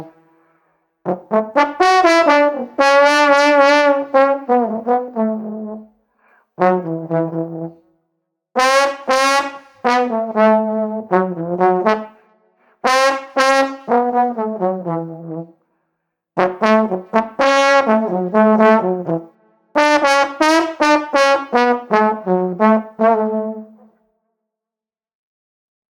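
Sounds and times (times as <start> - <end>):
street trombone playing groovy music: 1.1 - 5.8, 6.6 - 7.7, 8.6 - 12.1, 12.8 - 15.5, 16.4 - 23.8.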